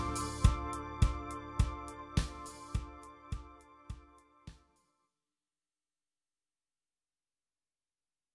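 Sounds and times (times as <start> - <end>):
solo clean guitar with distortion and delay effects: 0.0 - 3.6.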